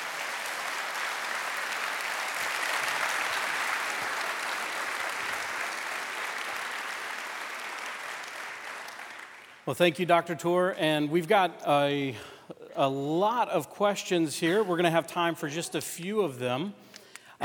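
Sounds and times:
audience applause: 0.0s - 9.6s
speech: 9.7s - 17.4s.

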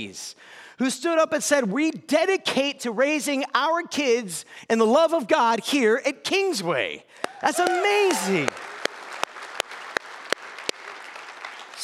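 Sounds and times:
speech: 0.0s - 8.6s
audience clapping: 7.2s - 11.8s.

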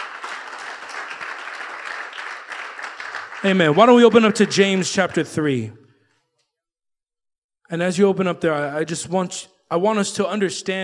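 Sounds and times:
audience applause: 0.0s - 5.1s
speech: 3.4s - 5.8s, 7.7s - 10.8s.

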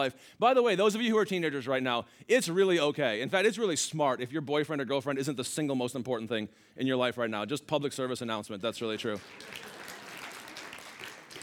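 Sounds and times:
speech: 0.0s - 9.8s
parents in the audience applauding: 9.2s - 11.4s.

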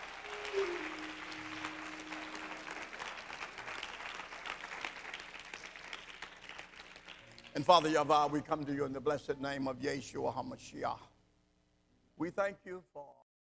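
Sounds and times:
audience hand clapping: 0.0s - 8.3s
speech: 7.6s - 11.1s, 12.2s - 13.0s.

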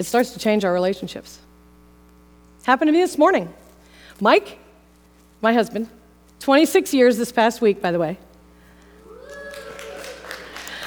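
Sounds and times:
speech: 0.0s - 1.5s, 2.6s - 3.6s, 4.2s - 4.6s, 5.4s - 8.3s
audience applause: 9.0s - 10.8s.

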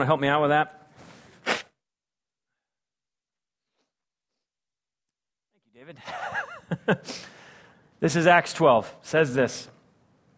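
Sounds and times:
speech: 0.0s - 0.8s, 5.8s - 7.4s, 8.0s - 9.7s
person blowing nose: 1.1s - 1.8s
laughter: 6.0s - 7.1s.

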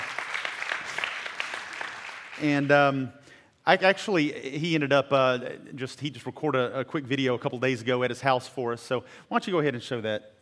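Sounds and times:
audience applause: 0.0s - 2.7s
speech: 2.4s - 10.4s.

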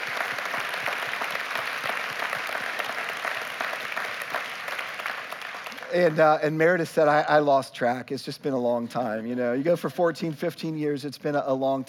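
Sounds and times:
audience applauding: 0.0s - 6.4s
speech: 5.9s - 11.8s.

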